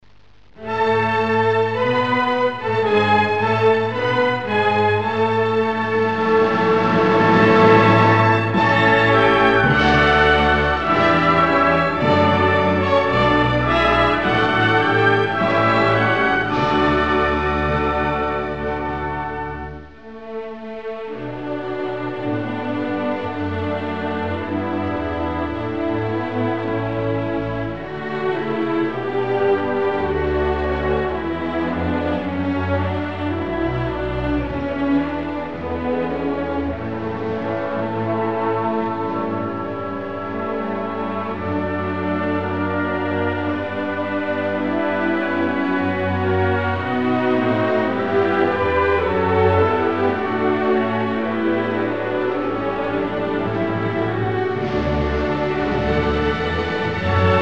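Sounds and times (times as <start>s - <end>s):
regional anthem: 0.5s - 57.4s.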